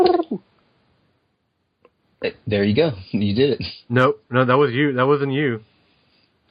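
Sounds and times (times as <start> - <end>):
person imitating a pigeon's coo: 0.0 - 0.5
speech: 0.0 - 0.5, 2.2 - 5.7.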